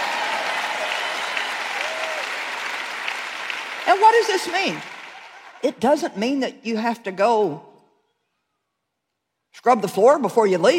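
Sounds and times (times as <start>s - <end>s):
people clapping: 0.0s - 5.8s
speech: 3.9s - 4.9s, 5.6s - 7.7s, 9.6s - 10.7s.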